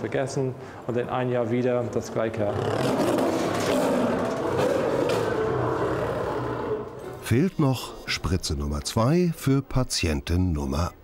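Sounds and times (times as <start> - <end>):
speech: 0.0 - 3.4, 7.3 - 11.0
lions roaring: 2.5 - 7.1.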